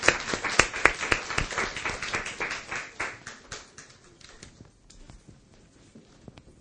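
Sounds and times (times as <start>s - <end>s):
audience applause: 0.0s - 4.5s.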